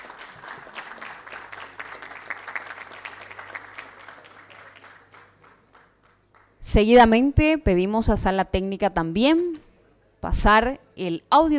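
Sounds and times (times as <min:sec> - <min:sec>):
audience applause: 0:00.0 - 0:06.5
speech: 0:06.7 - 0:09.6, 0:10.2 - 0:11.5.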